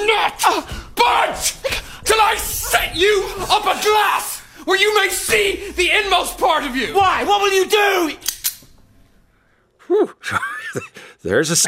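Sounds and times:
speech: 0:00.2 - 0:08.3, 0:09.9 - 0:11.6
gun being cocked: 0:08.2 - 0:08.7.

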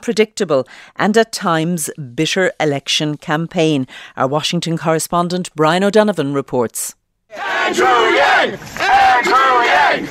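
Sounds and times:
speech: 0:00.0 - 0:10.0
supporters of Andrew Yang cheering in a Bronx park, New York City: 0:07.3 - 0:10.0.

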